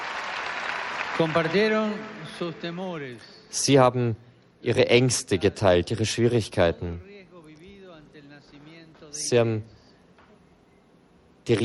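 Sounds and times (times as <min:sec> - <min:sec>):
applause: 0:00.0 - 0:02.6
speech: 0:01.2 - 0:07.1, 0:09.1 - 0:09.7.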